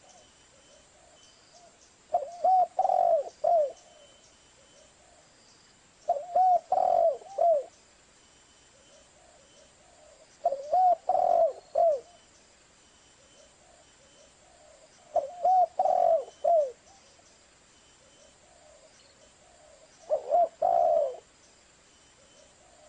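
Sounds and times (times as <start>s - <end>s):
spotted dove cooing on a lure recording: 0.0s - 5.2s, 6.1s - 7.7s, 8.7s - 12.2s, 13.2s - 17.1s, 18.0s - 21.3s, 22.2s - 22.8s.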